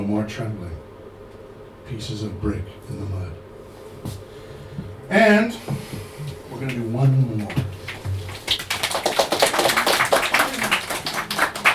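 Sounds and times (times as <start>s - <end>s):
speech: 0.1s - 0.9s, 1.9s - 4.2s, 4.8s - 7.8s
audience clapping: 6.6s - 11.7s.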